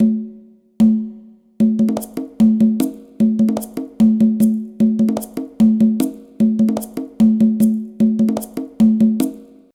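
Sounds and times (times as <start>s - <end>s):
bullerengue music: 0.0s - 9.7s.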